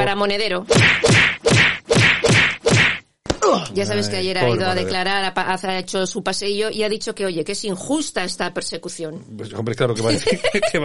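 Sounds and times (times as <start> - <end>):
speech: 0.0 - 1.3, 3.5 - 10.8
loud slap sound effects: 0.7 - 3.4
laughter: 10.0 - 10.8.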